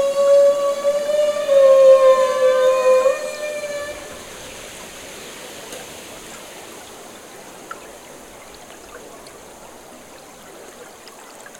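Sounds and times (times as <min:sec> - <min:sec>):
humpback whale feeding calls during bubble-net feeding: 0:00.0 - 0:04.7.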